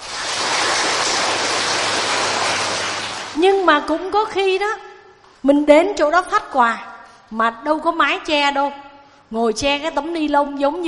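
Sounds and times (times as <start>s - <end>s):
audience applause: 0.0s - 3.4s
speech: 3.4s - 10.8s.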